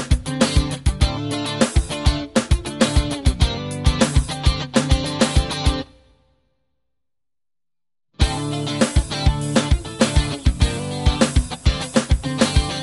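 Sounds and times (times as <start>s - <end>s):
Dorian D minor backing track on electric guitar: 0.0s - 6.0s, 8.2s - 12.8s.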